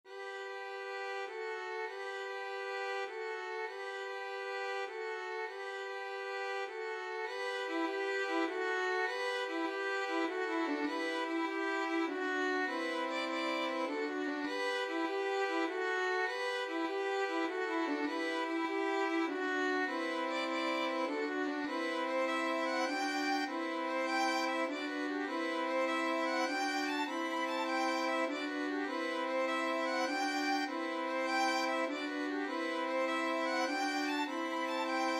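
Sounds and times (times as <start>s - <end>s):
violin trio: 0.1s - 35.1s.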